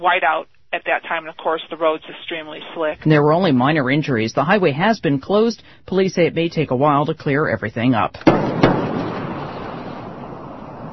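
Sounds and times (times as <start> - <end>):
speech: 0.0 - 8.6
twin sonic booms of space shuttle Atlantis landing at the Florida spaceport: 8.3 - 10.9.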